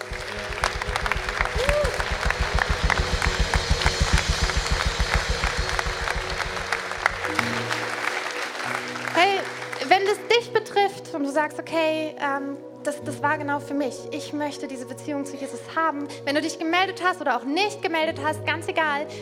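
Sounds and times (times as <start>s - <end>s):
audience applauding: 0.0s - 10.4s
speech: 11.4s - 19.2s.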